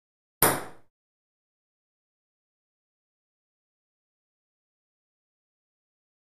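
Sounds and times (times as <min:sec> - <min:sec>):
single ping pong ball: 0:00.4 - 0:00.9.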